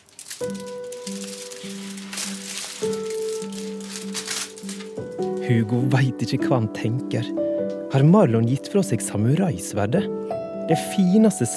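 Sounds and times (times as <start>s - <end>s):
tearing off silver wrapping paper: 0.0s - 5.4s
speech: 5.5s - 11.5s.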